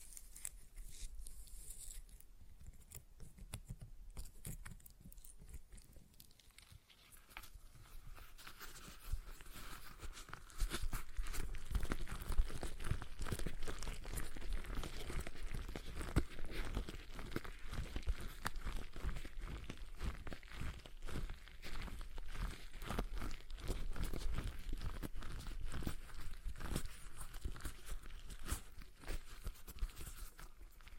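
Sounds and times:
stress ball squeezed: 0:00.0 - 0:30.9.

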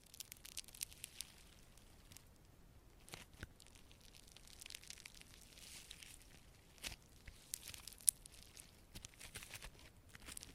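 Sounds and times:
slime squished and pulled: 0:00.0 - 0:02.2, 0:03.1 - 0:10.5.

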